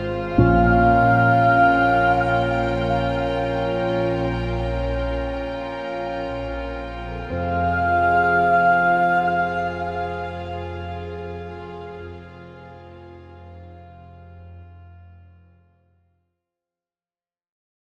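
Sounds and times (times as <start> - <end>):
person singing: 0.2 - 6.2, 7.1 - 11.9.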